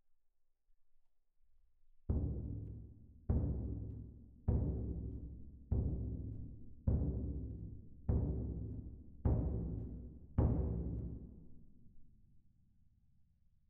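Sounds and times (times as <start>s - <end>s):
percussion: 2.1s - 11.8s.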